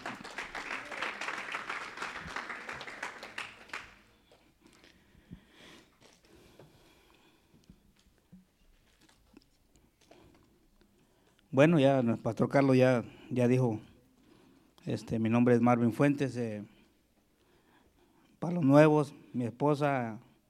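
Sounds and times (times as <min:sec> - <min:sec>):
loud audience applause: 0:00.0 - 0:04.1
speech: 0:11.6 - 0:13.9, 0:14.9 - 0:16.7, 0:18.4 - 0:20.3.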